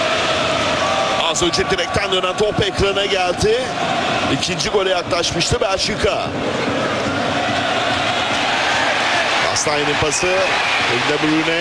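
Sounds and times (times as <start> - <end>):
football crowd noise: 0.0 - 11.5
speech: 1.4 - 6.9, 9.6 - 11.5
Turkish national team football supporters clapping for a player's effort: 8.1 - 11.5.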